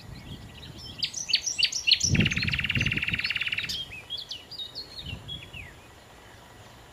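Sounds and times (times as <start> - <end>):
common nightingale singing: 0.0 - 6.9.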